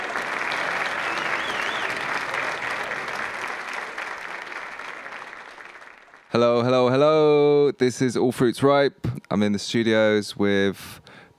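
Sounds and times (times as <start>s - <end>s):
audience applause: 0.0s - 6.4s
speech: 6.4s - 11.3s.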